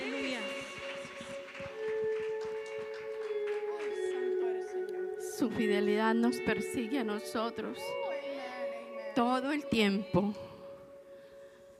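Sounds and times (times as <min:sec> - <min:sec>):
crowd clapping along: 0:00.0 - 0:06.8
sustained keyboard chords: 0:00.0 - 0:11.7
speech: 0:05.4 - 0:08.0, 0:09.2 - 0:10.5.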